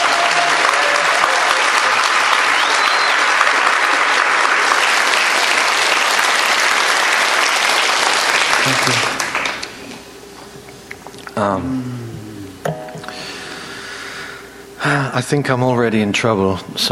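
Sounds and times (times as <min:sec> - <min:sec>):
audience applause: 0:00.0 - 0:10.0
speech: 0:08.8 - 0:09.1, 0:11.4 - 0:12.0, 0:15.1 - 0:16.9.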